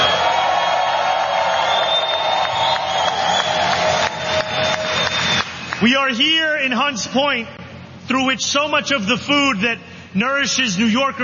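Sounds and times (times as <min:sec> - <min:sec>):
crowd cheering: 0:00.0 - 0:06.0
loud round of applause: 0:00.0 - 0:06.1
speech: 0:05.8 - 0:11.2.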